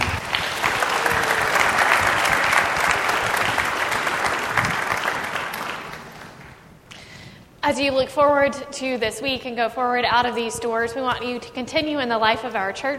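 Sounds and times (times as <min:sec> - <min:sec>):
audience applause: 0:00.0 - 0:06.6
speech: 0:07.7 - 0:12.9.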